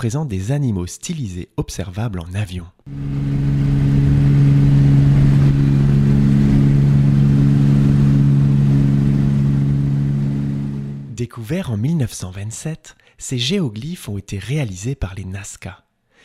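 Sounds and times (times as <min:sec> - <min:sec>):
speech: 0:00.0 - 0:03.3, 0:11.2 - 0:15.8
bus driving off: 0:02.9 - 0:11.1.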